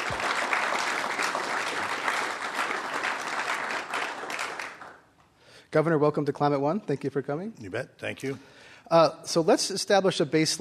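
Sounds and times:
Commonwealth Club audience applause welcoming a guest speaker: 0.0s - 5.1s
speech: 5.7s - 10.6s.

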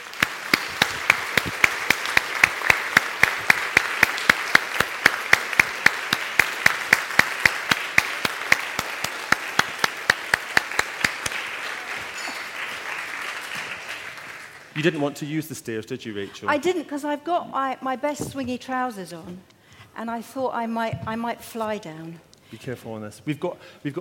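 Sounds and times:
audience clapping to welcome novelist Rachel Joyce at a book-and-wine event: 0.0s - 15.0s
speech: 14.8s - 24.0s.

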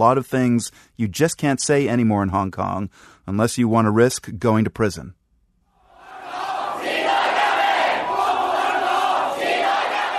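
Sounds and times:
speech: 0.0s - 5.2s
large protest crowd chanting slogan in unison: 6.0s - 10.1s.

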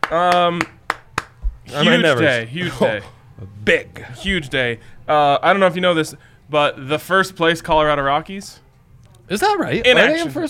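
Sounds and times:
clapping: 0.0s - 1.4s
speech: 0.1s - 0.8s, 1.7s - 8.6s, 9.3s - 10.4s.

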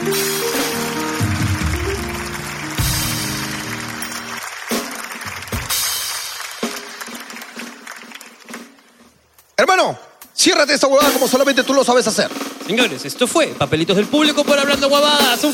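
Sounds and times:
audience applause: 0.5s - 9.0s
speech: 9.6s - 15.5s.

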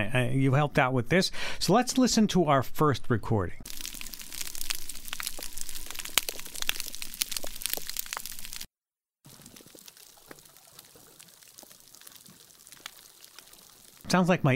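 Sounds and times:
speech: 0.0s - 3.8s, 14.1s - 14.5s
reef fish clicks and pops underwater: 3.7s - 8.7s, 9.3s - 14.1s.

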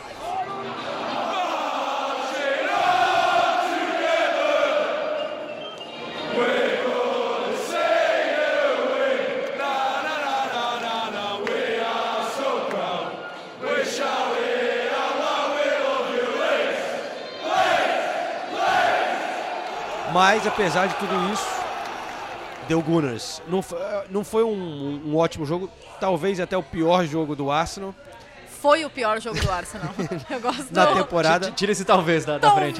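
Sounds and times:
large crowd of football supporters singing a chant in unison: 0.6s - 20.2s
speech: 20.2s - 21.6s, 22.7s - 32.7s
laughter: 29.3s - 31.6s.

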